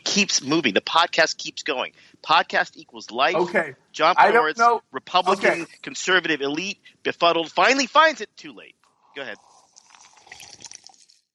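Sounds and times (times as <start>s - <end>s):
speech: 0.2s - 9.5s
person gulping a drink: 9.0s - 11.3s.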